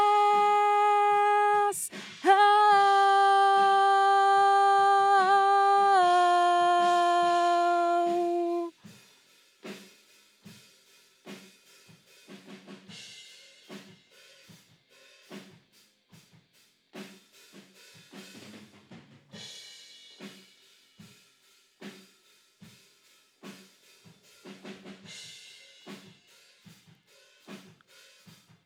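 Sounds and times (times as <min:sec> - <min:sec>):
vocals: 0:00.0 - 0:08.7.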